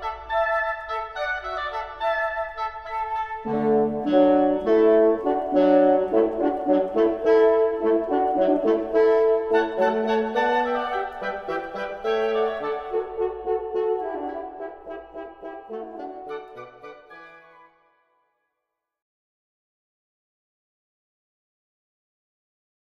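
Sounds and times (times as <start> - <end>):
hornpipe tune: 0.0 - 18.1.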